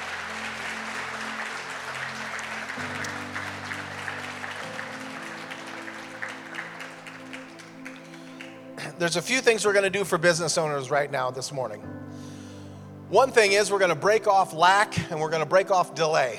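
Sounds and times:
audience applause: 0.0s - 9.0s
organ or keyboard chords: 0.0s - 16.3s
speech: 9.0s - 12.2s, 13.1s - 16.3s.

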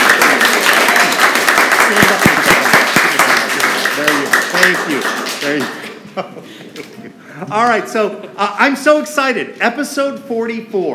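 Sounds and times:
classroom of students clapping as a studio audience for a class radio show: 0.0s - 6.0s
speech: 4.7s - 10.9s
laughter: 5.8s - 8.5s.

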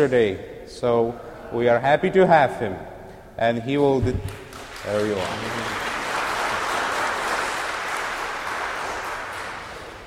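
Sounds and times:
speech: 0.0s - 5.9s
audience applause: 4.5s - 10.0s.

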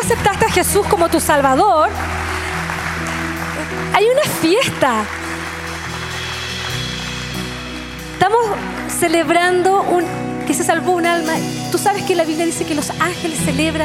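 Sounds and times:
audience applause: 0.0s - 9.8s
speech: 0.1s - 2.2s, 3.9s - 5.2s, 8.2s - 13.8s.

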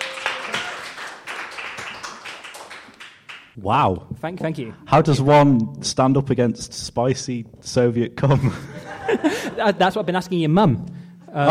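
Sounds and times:
audience clapping: 0.0s - 3.6s
speech: 3.6s - 11.4s
laughter: 8.3s - 9.9s.

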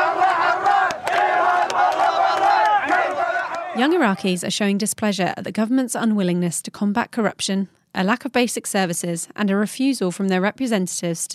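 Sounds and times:
protesters chanting slogans during clashes: 0.0s - 4.4s
speech: 3.8s - 11.3s.

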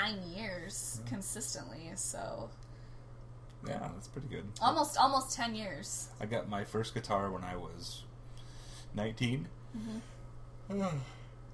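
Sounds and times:
speech: 0.1s - 2.7s, 3.6s - 8.1s, 8.9s - 11.2s
mother yawning: 9.7s - 10.1s.

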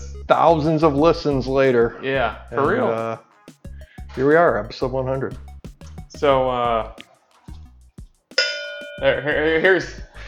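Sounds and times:
speech: 0.3s - 3.3s, 4.2s - 5.5s, 6.2s - 7.0s, 9.0s - 10.1s
mug struck to ring like a bell: 8.4s - 9.5s.

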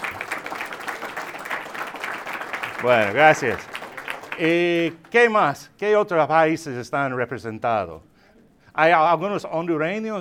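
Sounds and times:
audience applause for the Cubans: 0.0s - 5.2s
speech: 2.8s - 3.7s, 4.4s - 8.1s, 8.8s - 10.1s.

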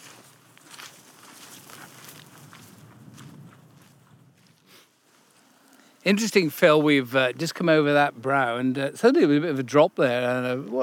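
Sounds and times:
squelching footsteps of walkers on wet hillside ground: 0.0s - 5.8s
speech: 6.0s - 10.8s.

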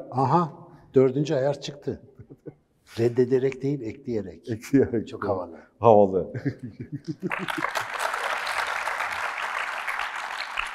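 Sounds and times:
speech: 0.0s - 2.1s, 2.9s - 7.9s
laughter: 6.3s - 8.2s
crowd applauding: 7.2s - 10.7s.

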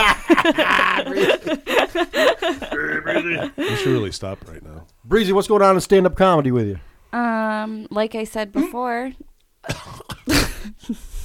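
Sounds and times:
laughter: 0.0s - 4.2s
speech: 0.4s - 2.4s, 3.3s - 11.2s
person coughing while choking on a soggy alcohol-soaked bean: 2.7s - 4.0s, 9.6s - 10.7s.

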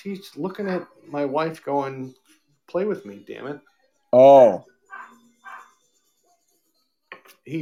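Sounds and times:
speech: 0.0s - 4.7s
dog barking: 4.9s - 5.8s.

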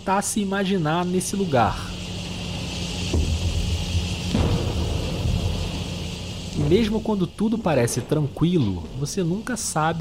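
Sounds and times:
speech: 0.0s - 2.0s, 6.7s - 9.9s
high insect-like drone in the jungle: 0.0s - 9.9s
low rumbling: 1.9s - 9.5s.

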